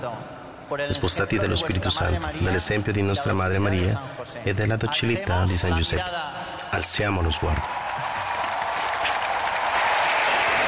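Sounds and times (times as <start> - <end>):
speech: 0.0 - 8.1
loud applause at the Fiera di Madrid: 7.2 - 10.6.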